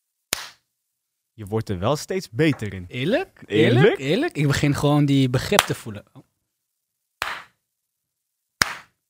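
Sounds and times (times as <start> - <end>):
hand claps for audio sync: 0.3 - 0.6, 5.5 - 5.8, 7.2 - 7.6, 8.6 - 9.0
speech: 1.4 - 6.3.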